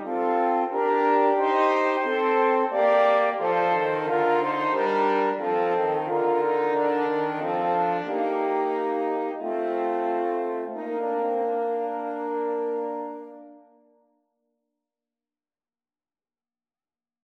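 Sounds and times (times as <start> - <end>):
horn trio playing: 0.0 - 13.7.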